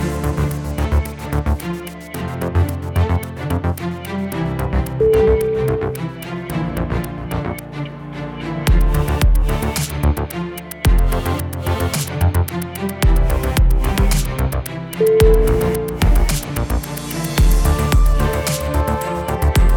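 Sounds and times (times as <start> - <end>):
digital corporate music: 0.0 - 6.6, 8.7 - 19.7.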